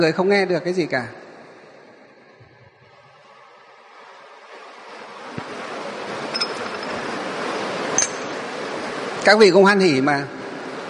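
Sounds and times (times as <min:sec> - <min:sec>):
speech: 0:00.0 - 0:01.2, 0:09.2 - 0:10.4
rain falling: 0:03.2 - 0:09.6.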